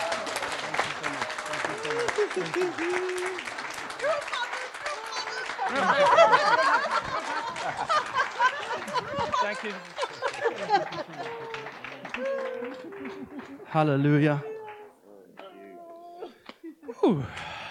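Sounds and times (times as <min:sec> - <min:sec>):
laughter: 0:00.0 - 0:14.8
audience applause: 0:00.0 - 0:14.9
speech: 0:02.3 - 0:04.5, 0:05.7 - 0:11.5, 0:13.7 - 0:14.5.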